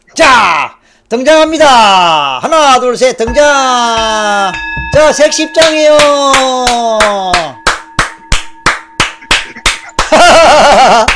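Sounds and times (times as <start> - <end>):
speech: 0.2 - 7.6
audience rhythmic clapping in unison: 3.3 - 11.1
laughter: 9.2 - 11.1.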